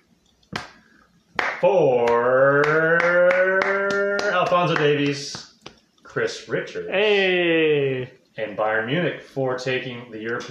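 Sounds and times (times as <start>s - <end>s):
slow clap: 0.5s - 5.8s
speech: 1.6s - 2.4s, 4.6s - 5.5s, 6.1s - 10.4s.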